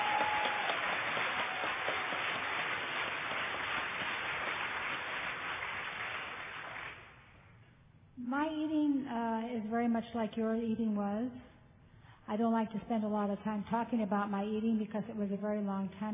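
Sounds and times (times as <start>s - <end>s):
audience applauding: 0.0s - 7.2s
speech: 8.6s - 11.5s, 12.3s - 16.1s.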